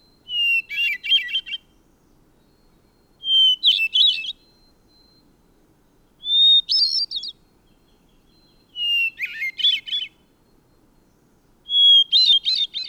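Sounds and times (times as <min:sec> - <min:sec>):
bird song of bright rapid chirps and trills: 0:00.3 - 0:05.2, 0:06.2 - 0:12.8.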